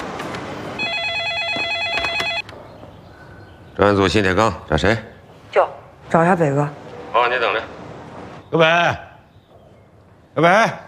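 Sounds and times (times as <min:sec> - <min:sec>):
telephone ringing: 0:00.7 - 0:02.5
speech: 0:03.8 - 0:07.8, 0:08.5 - 0:09.1, 0:10.4 - 0:10.8.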